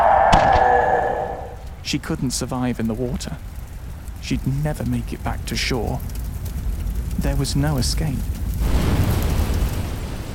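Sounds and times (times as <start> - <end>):
explosion: 0.2 - 1.6, 8.5 - 10.3
speech: 1.9 - 3.5, 4.2 - 6.1, 7.2 - 8.8.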